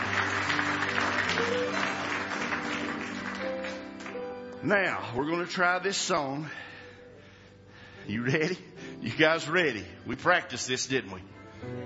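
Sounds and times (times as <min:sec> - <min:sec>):
audience clapping: 0:00.0 - 0:04.6
speech: 0:04.6 - 0:06.6, 0:08.1 - 0:11.8.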